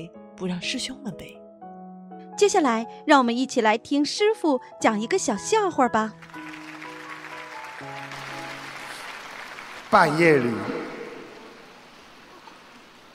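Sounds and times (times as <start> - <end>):
speech: 0.0 - 1.4, 2.4 - 6.4, 9.9 - 10.9
audience applause: 6.2 - 13.1.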